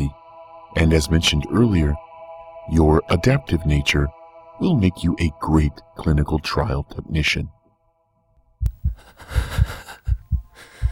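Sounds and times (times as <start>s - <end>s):
speech: 0.8s - 2.1s, 2.7s - 7.6s
rapid heartbeat: 8.6s - 10.9s.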